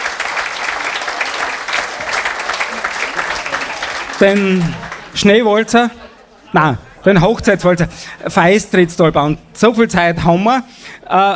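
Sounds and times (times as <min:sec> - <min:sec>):
audience applause: 0:00.0 - 0:05.2
speech: 0:04.2 - 0:11.3.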